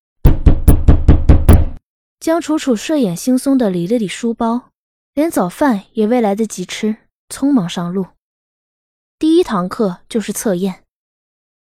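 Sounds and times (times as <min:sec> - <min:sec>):
pounding on a door: 0:00.2 - 0:01.8
speech: 0:02.2 - 0:08.2, 0:09.2 - 0:10.8.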